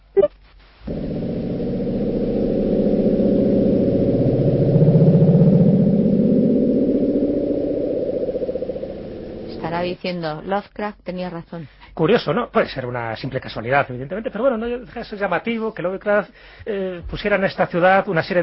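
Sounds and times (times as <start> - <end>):
Bloop low-frequency underwater ocean sound: 0.9 - 10.0
speech: 10.0 - 18.4.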